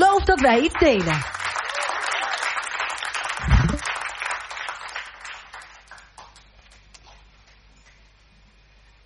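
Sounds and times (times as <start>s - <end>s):
loud audience applause: 0.0s - 6.5s
speech: 0.3s - 1.4s
low thump: 3.4s - 3.8s.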